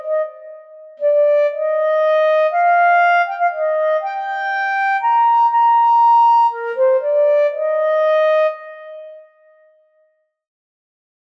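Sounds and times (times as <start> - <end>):
B-flat clarinet: 0.0 - 10.0.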